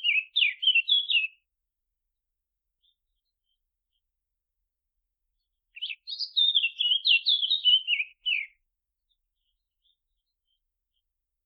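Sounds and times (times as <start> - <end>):
Eurasian blackcap Sylvia atricapilla warbling song: 0.0 - 1.4, 5.8 - 8.6.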